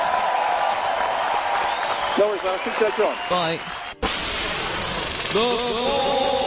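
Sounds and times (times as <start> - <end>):
audience clapping for a radio show guest: 0.0 - 4.1
speech: 2.2 - 3.7, 5.3 - 6.3.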